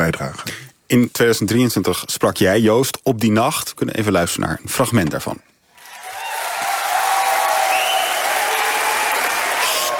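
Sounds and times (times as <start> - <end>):
speech: 0.1 - 5.5
applause from a sizable audience: 5.8 - 9.9
whistles: 7.6 - 8.4.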